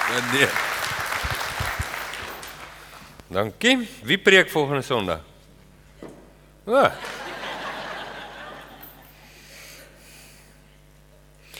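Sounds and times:
audience hand clapping: 0:00.0 - 0:03.2
speech: 0:00.1 - 0:01.3, 0:03.3 - 0:05.3, 0:06.7 - 0:07.2
laughter: 0:06.8 - 0:09.1.

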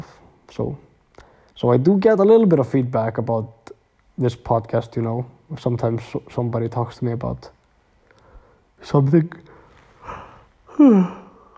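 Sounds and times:
speech: 0:00.5 - 0:00.9, 0:01.6 - 0:03.6, 0:04.2 - 0:07.6, 0:08.8 - 0:10.2, 0:10.8 - 0:11.2
person yawning: 0:10.0 - 0:11.5.

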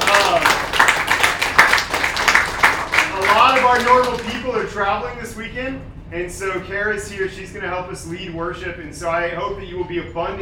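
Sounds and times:
audience clapping: 0:00.0 - 0:04.7
speech: 0:04.8 - 0:10.4.

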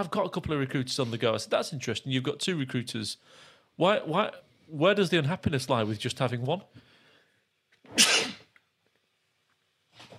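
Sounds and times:
speech: 0:00.0 - 0:06.9
loud harsh cough: 0:07.9 - 0:08.5.

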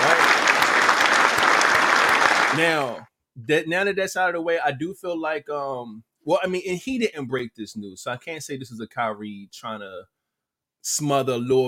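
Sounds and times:
applause: 0:00.0 - 0:03.0
speech: 0:02.6 - 0:10.1, 0:10.8 - 0:11.6.

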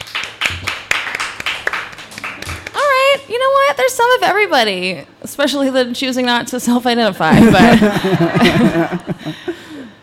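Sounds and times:
crowd clapping in a loose scattered burst: 0:00.0 - 0:03.2
speech: 0:03.3 - 0:09.6
laughter: 0:07.3 - 0:09.6.

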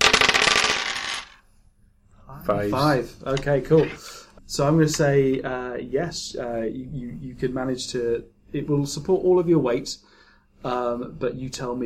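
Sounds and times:
dice being rolled: 0:00.0 - 0:01.4
speech: 0:02.4 - 0:11.8.

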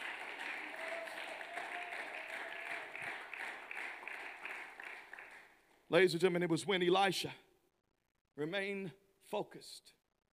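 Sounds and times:
audience applause: 0:00.0 - 0:05.6
speech: 0:05.9 - 0:07.4, 0:08.4 - 0:10.0.

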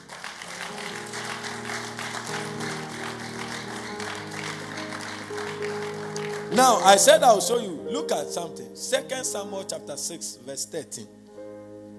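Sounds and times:
audience applause: 0:00.0 - 0:07.2
sustained organ or keyboard tones: 0:00.2 - 0:11.8
speech: 0:06.6 - 0:11.2.

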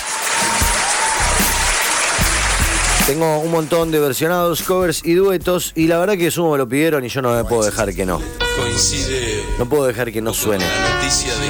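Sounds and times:
applause: 0:00.0 - 0:04.2
speech: 0:03.1 - 0:11.4.

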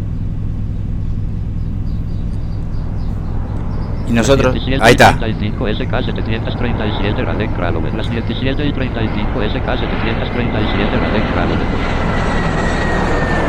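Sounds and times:
airplane engines droning as it prepares to depart: 0:00.0 - 0:13.4
indistinct voices: 0:03.5 - 0:11.8
speech: 0:04.1 - 0:12.7.

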